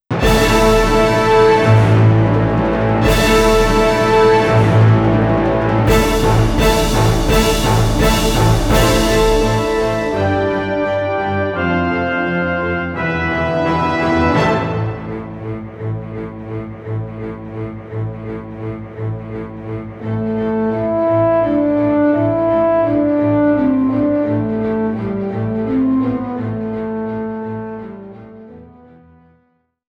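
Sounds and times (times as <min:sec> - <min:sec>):
background music: 0:00.1 - 0:29.3.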